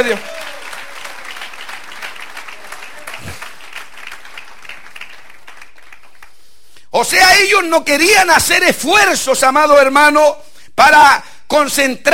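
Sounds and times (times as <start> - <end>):
speech: 0.0 - 0.4, 7.0 - 12.1
audience applauding: 0.0 - 6.5.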